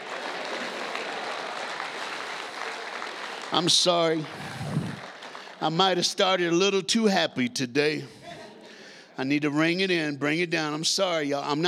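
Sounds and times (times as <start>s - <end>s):
audience clapping hands: 0.0s - 6.6s
speech: 3.5s - 4.6s, 5.6s - 8.2s, 9.2s - 11.6s.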